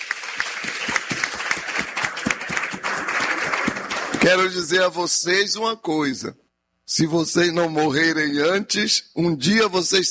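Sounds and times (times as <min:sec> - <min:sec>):
audience applause: 0:00.0 - 0:04.6
speech: 0:04.2 - 0:10.0.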